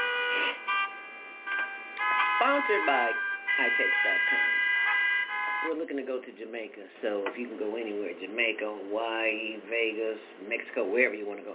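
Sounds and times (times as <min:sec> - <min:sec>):
honking car horns in heavy traffic: 0:00.0 - 0:05.8
speech: 0:02.4 - 0:04.6, 0:05.6 - 0:11.5.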